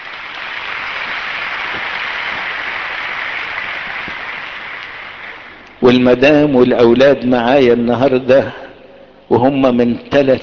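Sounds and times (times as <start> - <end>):
church congregation applauding a man on his wedding anniversary: 0.0 - 5.8
speech: 5.8 - 8.6, 9.4 - 10.4.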